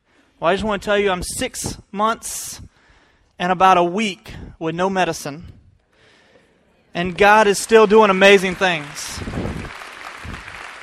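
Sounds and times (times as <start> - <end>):
speech: 0.4 - 2.7, 3.4 - 5.6, 6.9 - 9.6
audience applause: 7.0 - 10.8.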